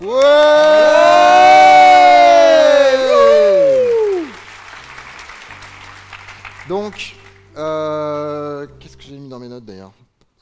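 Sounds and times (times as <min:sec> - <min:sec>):
live audience cheering at the Devoxx France conference: 0:00.0 - 0:04.5.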